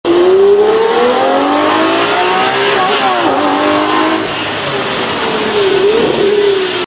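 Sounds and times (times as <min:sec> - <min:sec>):
Lamborghini Murcielago LP640 engine: 0:00.0 - 0:06.8.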